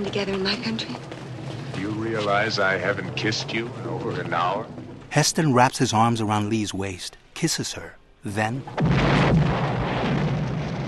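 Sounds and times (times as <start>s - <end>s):
speech: 0.0s - 1.2s, 1.8s - 9.5s
Cadillac car exploding in the film Touch of Evil: 8.4s - 10.8s.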